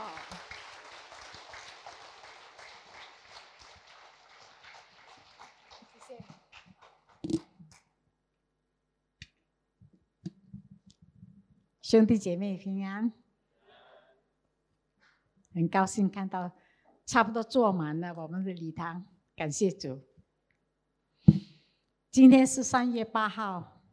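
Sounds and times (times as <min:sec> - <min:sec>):
warm audience applause: 0:00.0 - 0:07.4
speech: 0:11.9 - 0:13.2, 0:15.6 - 0:20.1, 0:22.1 - 0:23.7.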